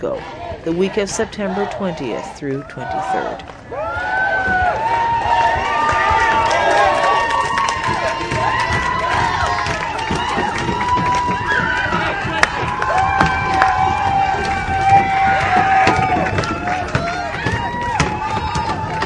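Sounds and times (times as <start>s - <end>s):
speech: 0.0s - 4.6s
protest crowd shouting and chanting: 0.0s - 19.0s
fists banging on doors: 7.7s - 19.0s.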